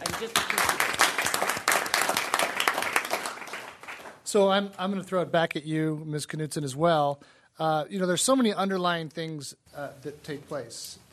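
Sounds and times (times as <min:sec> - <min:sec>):
applause: 0:00.0 - 0:04.2
speech: 0:00.2 - 0:00.6, 0:04.3 - 0:11.1.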